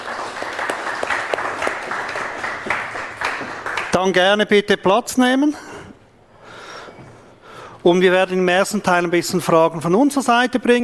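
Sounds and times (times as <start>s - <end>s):
audience applause: 0.0s - 4.2s
speech: 4.0s - 5.7s, 7.8s - 10.8s.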